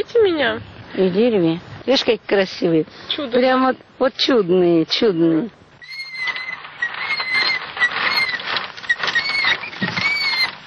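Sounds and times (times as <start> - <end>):
noise: 0.0 - 10.6
speech: 0.3 - 5.6
unoiled tricycle squeaking: 5.8 - 10.6.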